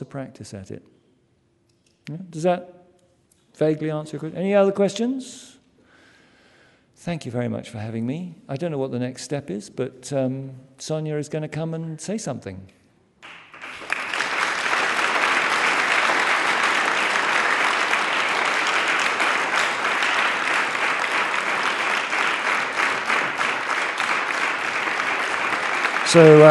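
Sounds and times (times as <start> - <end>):
speech: 0.0 - 1.0, 2.1 - 2.8, 3.6 - 5.6, 7.0 - 12.8, 26.1 - 26.4
audience clapping: 13.2 - 26.4.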